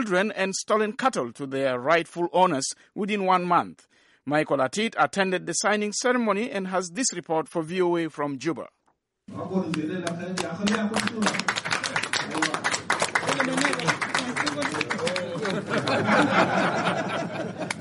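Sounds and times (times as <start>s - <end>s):
speech: 0.0s - 11.5s
crowd clapping at a signing ceremony in Juba: 9.6s - 17.8s
voices cheering, laughing and calling out: 15.3s - 17.8s.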